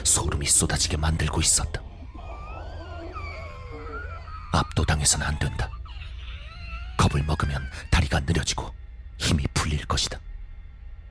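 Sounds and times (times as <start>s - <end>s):
eerie creature wail: 0.0s - 8.7s
speech: 0.1s - 1.8s, 4.8s - 5.8s, 7.1s - 10.3s.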